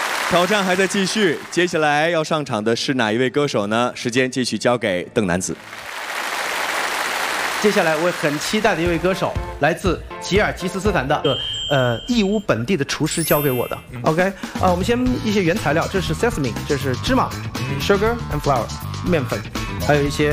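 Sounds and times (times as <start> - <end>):
audience applause: 0.0 - 1.8, 5.6 - 9.0
speech: 0.3 - 6.0, 7.6 - 20.3.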